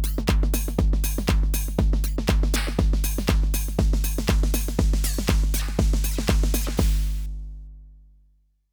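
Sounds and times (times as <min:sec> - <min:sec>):
drum machine beat with EQ: 0:00.0 - 0:07.5.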